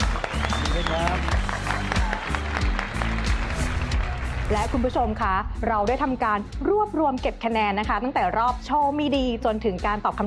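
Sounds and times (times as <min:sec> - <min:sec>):
audience applause: 0:00.0 - 0:05.0
speech: 0:04.5 - 0:10.2.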